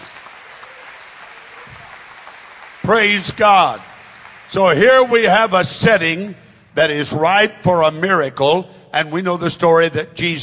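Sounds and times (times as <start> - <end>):
crowd clapping: 0.0 - 5.7
speech: 2.9 - 3.9, 4.5 - 10.4.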